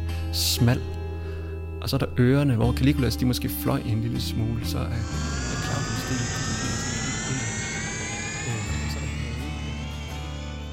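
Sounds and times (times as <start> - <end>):
speech: 0.3 - 1.0, 1.8 - 6.7
fake time machine sound effect: 4.9 - 10.7.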